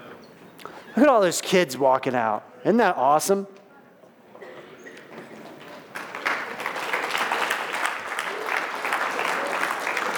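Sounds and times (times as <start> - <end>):
speech: 1.0 - 3.6
audience applause: 5.6 - 10.1.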